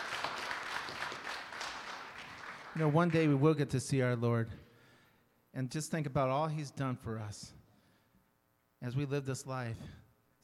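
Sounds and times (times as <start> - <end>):
church congregation clapping hands in praise: 0.0 - 3.7
speech: 2.8 - 4.7, 5.6 - 7.6, 8.8 - 10.4.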